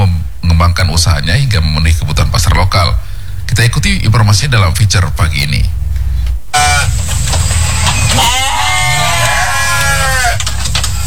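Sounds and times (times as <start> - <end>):
low rumble: 0.0 - 11.0
speech: 0.8 - 5.8, 6.5 - 7.4, 8.1 - 8.4
goats bleating in a pen: 8.0 - 10.6.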